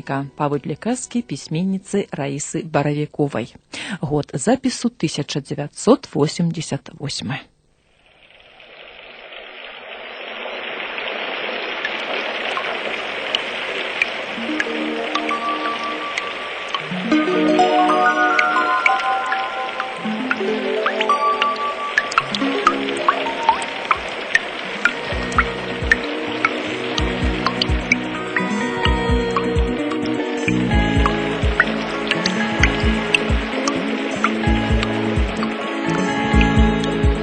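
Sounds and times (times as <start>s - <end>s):
speech: 0.0s - 7.5s
steady hissing rain over a city in the morning: 7.7s - 37.2s
scattered sharp drips and patters of rain: 9.4s - 37.2s
low sustained melodic tones in slow steps: 14.3s - 37.2s.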